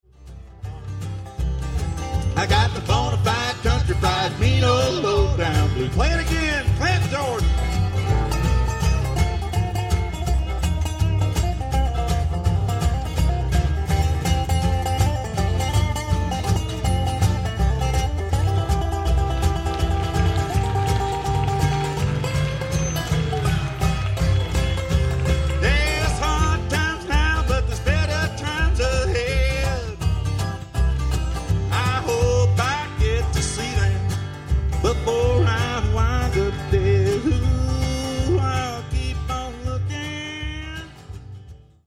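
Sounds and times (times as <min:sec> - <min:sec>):
blues string band: 0:00.0 - 0:41.8.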